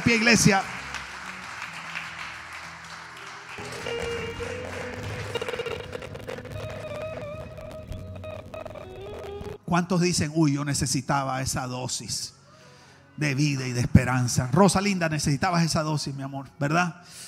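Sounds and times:
audience applauding: 0:00.0 - 0:09.4
speech: 0:00.1 - 0:00.8, 0:09.7 - 0:12.4, 0:13.2 - 0:17.2.

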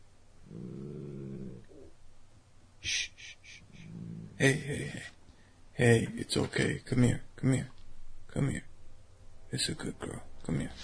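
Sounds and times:
dog growling: 0:00.4 - 0:01.9, 0:03.8 - 0:04.4
speech: 0:04.4 - 0:05.2, 0:05.8 - 0:07.8, 0:08.4 - 0:08.7, 0:09.5 - 0:10.8.

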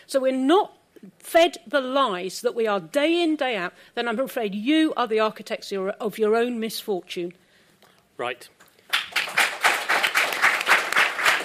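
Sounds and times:
speech: 0:00.1 - 0:07.4, 0:08.2 - 0:08.6
audience applause: 0:08.9 - 0:11.4.

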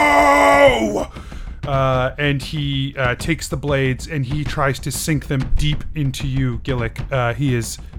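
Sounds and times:
huge furious scream: 0:00.0 - 0:01.1
speech: 0:01.7 - 0:07.9.

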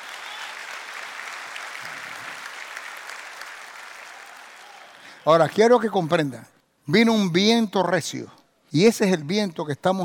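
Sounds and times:
audience applause: 0:00.0 - 0:05.3
speech: 0:05.2 - 0:10.0.

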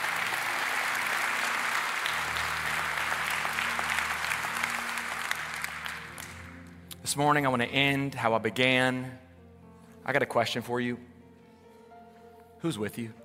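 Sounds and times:
audience applause: 0:00.0 - 0:06.6
speech: 0:07.1 - 0:09.2, 0:10.1 - 0:11.1, 0:12.6 - 0:13.2.

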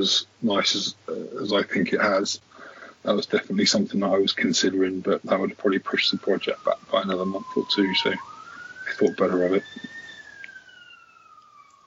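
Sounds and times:
speech: 0:00.0 - 0:08.3, 0:09.0 - 0:09.9
ambulance siren: 0:04.8 - 0:11.8.

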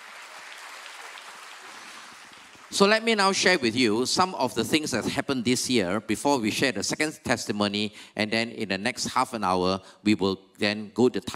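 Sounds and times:
audience clapping: 0:00.0 - 0:03.6
speech: 0:02.7 - 0:11.3.

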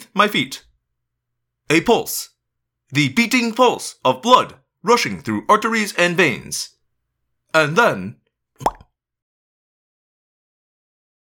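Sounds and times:
speech: 0:00.2 - 0:00.7, 0:01.7 - 0:02.3, 0:02.9 - 0:06.8, 0:07.5 - 0:08.8
hollow pop: 0:08.6 - 0:08.8.

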